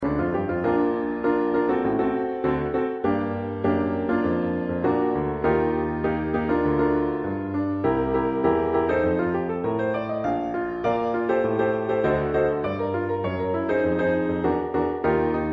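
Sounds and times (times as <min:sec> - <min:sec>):
piano: 0:00.0 - 0:15.5.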